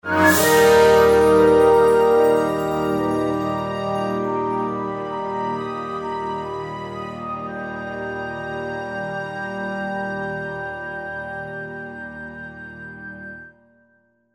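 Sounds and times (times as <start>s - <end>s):
medium victory jingle: 0.1s - 5.5s.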